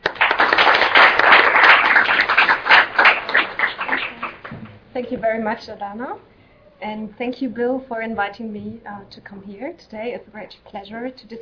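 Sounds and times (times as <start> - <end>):
audience applause at an evening talk on agricultural land grabs: 0.0 - 4.7
speech: 5.1 - 11.3.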